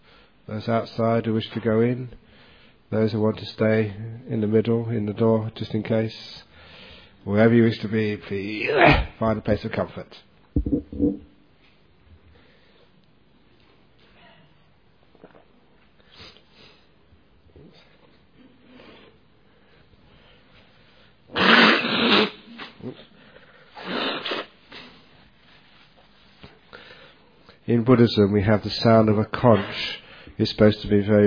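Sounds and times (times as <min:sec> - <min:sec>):
speech: 0:00.5 - 0:02.2, 0:02.9 - 0:06.5, 0:07.2 - 0:11.3, 0:27.7 - 0:31.2
person blowing their nose: 0:21.3 - 0:23.1, 0:23.7 - 0:25.1.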